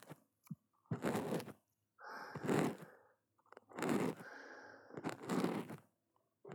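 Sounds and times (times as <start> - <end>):
stainless steel ear pick scraping: 0.9 - 1.5, 2.2 - 2.9, 3.7 - 4.3, 4.9 - 5.8.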